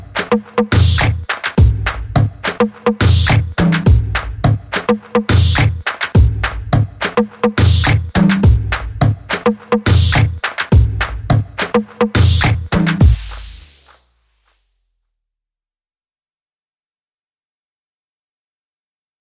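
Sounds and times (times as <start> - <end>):
music beat: 0.0 - 14.7.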